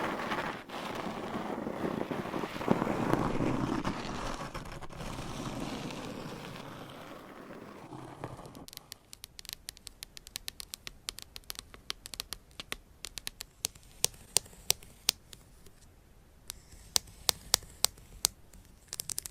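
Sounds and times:
scratching and rubbing: 0:00.0 - 0:15.9, 0:16.5 - 0:19.2
crisp taps and clicks: 0:08.4 - 0:15.8, 0:16.5 - 0:19.2.

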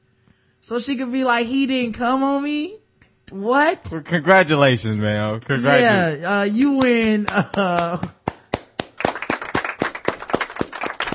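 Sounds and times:
speech: 0:00.6 - 0:08.2
polite hand clapping: 0:06.5 - 0:11.1.

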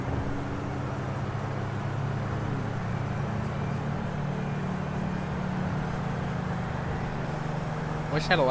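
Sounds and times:
car drifting engine drone in the video game GTA 5: 0:00.0 - 0:08.4.

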